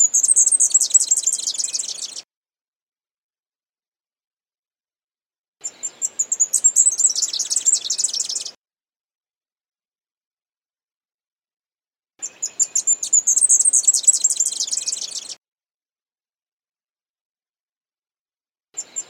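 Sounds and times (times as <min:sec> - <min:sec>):
leaf warbler song of quick chirps building into a fast trill: 0:00.0 - 0:02.2, 0:05.6 - 0:08.6, 0:12.2 - 0:15.4.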